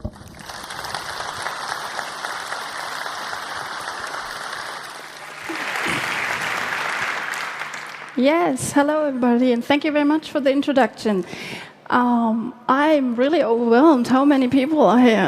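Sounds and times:
large audience applause: 0:00.0 - 0:08.5
speech: 0:08.2 - 0:15.2.

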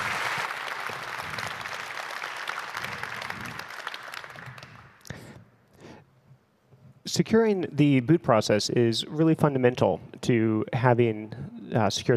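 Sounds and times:
audience applause: 0:00.0 - 0:05.1
speech: 0:07.1 - 0:12.1.

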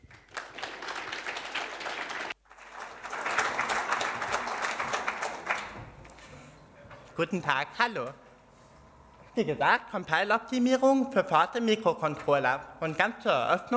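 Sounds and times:
audience applause: 0:00.0 - 0:05.9
speech: 0:07.2 - 0:08.2, 0:09.4 - 0:13.7.

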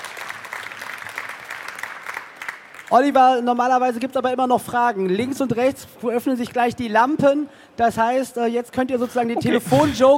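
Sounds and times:
audience applause at the end of a talk at a congress: 0:00.0 - 0:02.9
speech: 0:02.9 - 0:10.1.

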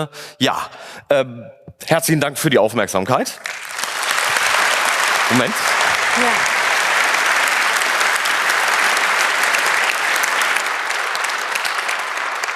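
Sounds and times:
speech: 0:00.0 - 0:03.8, 0:05.3 - 0:06.5
audience applause: 0:03.4 - 0:12.5.

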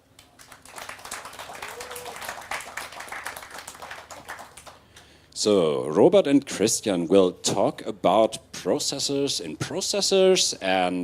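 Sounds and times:
audience applause: 0:00.4 - 0:04.8
speech: 0:05.4 - 0:11.0.

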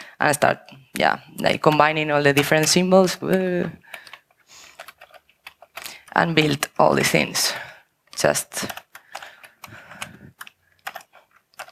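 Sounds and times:
speech: 0:00.2 - 0:04.0, 0:06.2 - 0:08.8
typing on a computer keyboard: 0:01.4 - 0:11.7.

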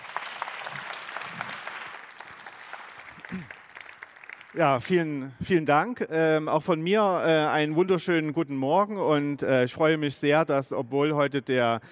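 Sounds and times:
audience applause: 0:00.0 - 0:04.8
speech: 0:04.5 - 0:11.9.

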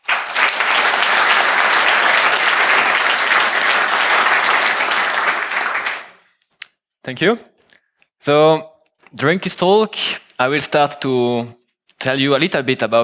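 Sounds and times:
audience applause: 0:00.0 - 0:06.2
speech: 0:07.1 - 0:07.5, 0:08.2 - 0:13.0.

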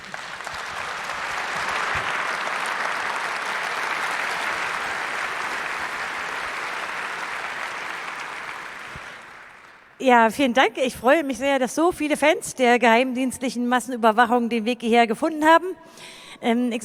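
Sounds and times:
audience applause: 0:00.0 - 0:10.0
speech: 0:10.0 - 0:16.8.

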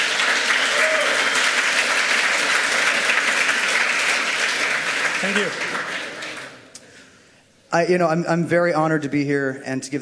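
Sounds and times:
audience applause: 0:00.0 - 0:06.7
speech: 0:05.2 - 0:05.7, 0:07.7 - 0:10.0.

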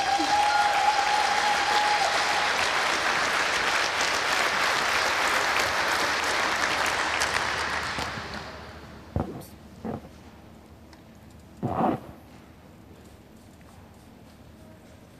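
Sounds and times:
audience applause: 0:00.0 - 0:08.8.

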